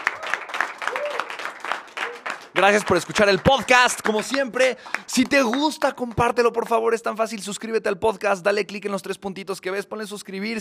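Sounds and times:
audience applause: 0.0 - 6.2
speech: 2.6 - 10.5.

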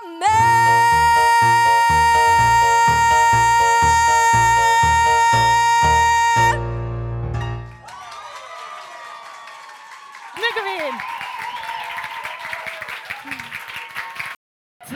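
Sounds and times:
warbling voices singing held tones: 0.2 - 6.6
audience applause: 7.7 - 14.4.

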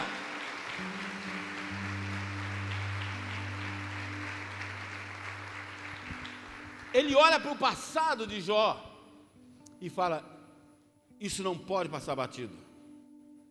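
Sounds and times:
audience applause: 0.0 - 7.2
low sustained keyboard chords: 0.0 - 11.7
speech: 7.0 - 8.9, 9.8 - 10.3, 11.2 - 12.6.

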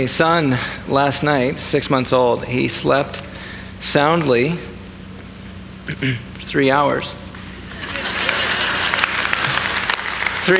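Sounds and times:
laughter: 0.0 - 3.0, 7.3 - 10.5
speech: 0.0 - 4.7, 5.9 - 7.2
audience clapping: 7.3 - 10.5.

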